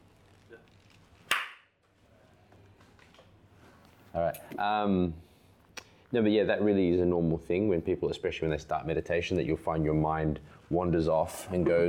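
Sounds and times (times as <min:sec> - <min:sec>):
single hand clap: 0:01.3 - 0:01.7
speech: 0:04.2 - 0:05.3, 0:06.1 - 0:11.8.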